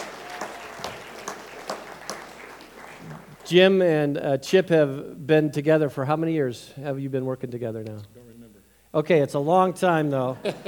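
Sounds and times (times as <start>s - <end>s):
audience clapping: 0.0s - 3.6s
speech: 3.5s - 8.2s, 8.9s - 10.6s.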